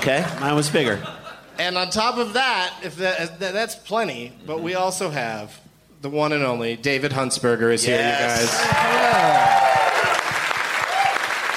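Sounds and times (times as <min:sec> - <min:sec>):
speech: 0:00.0 - 0:09.7
person whooping: 0:08.1 - 0:11.4
audience applause: 0:08.4 - 0:11.5.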